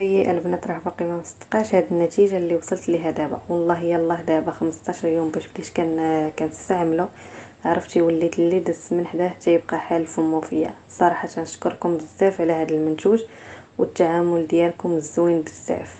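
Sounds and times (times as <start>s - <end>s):
vocals: 0.0s - 15.9s.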